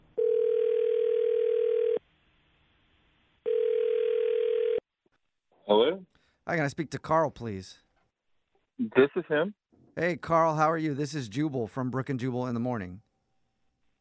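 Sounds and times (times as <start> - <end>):
telephone dial tone: 0.2 - 2.0, 3.5 - 4.8
speech: 5.7 - 7.8, 8.8 - 13.0.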